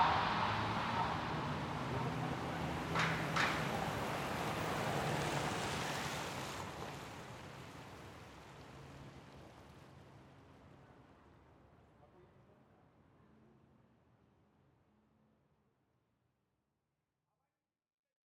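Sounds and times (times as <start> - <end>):
Portland Old Town soundscape: 0.0 - 11.8.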